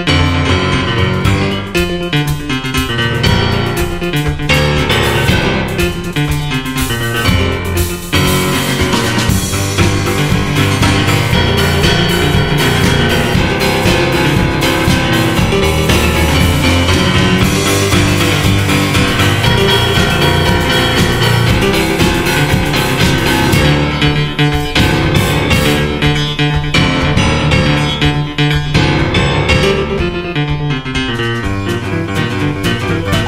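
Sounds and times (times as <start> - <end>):
fast piano music: 0.0 - 33.2.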